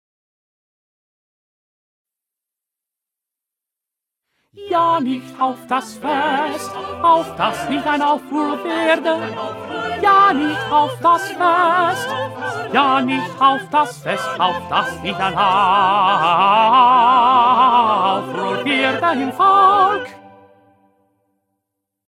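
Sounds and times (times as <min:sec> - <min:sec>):
first tenor voice singing: 0:04.6 - 0:20.3.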